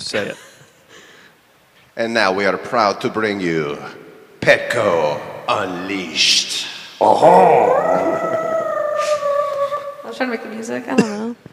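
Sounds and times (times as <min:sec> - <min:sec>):
speech: 0:00.1 - 0:00.5, 0:02.0 - 0:08.2, 0:10.2 - 0:11.5
person singing a musical imitation of a cat's purr: 0:07.0 - 0:10.0.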